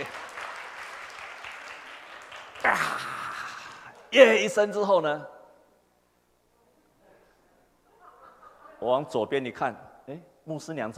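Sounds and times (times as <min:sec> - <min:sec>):
applause: 0:00.0 - 0:04.0
speech: 0:04.1 - 0:05.3, 0:08.8 - 0:10.9
laughter: 0:07.9 - 0:08.9.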